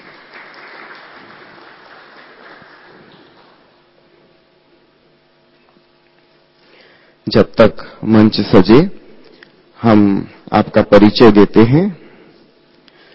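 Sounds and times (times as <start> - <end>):
audience applause: 0.0 - 3.8
speech: 7.3 - 9.0, 9.8 - 12.0.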